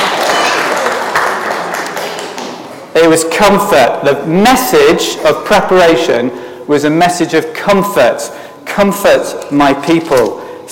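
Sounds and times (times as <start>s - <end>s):
audience applause for a woman who answered correctly in a talk: 0.0s - 2.6s
speech: 3.0s - 10.7s.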